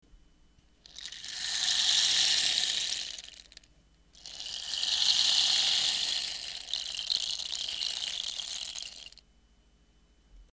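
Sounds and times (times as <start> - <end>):
rain stick: 0.8 - 9.2.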